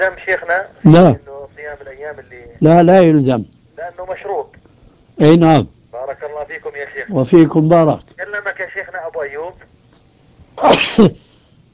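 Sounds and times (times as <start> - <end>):
speech: 0.0 - 4.6, 5.2 - 9.8, 10.6 - 11.3
loud sneeze: 10.6 - 11.4.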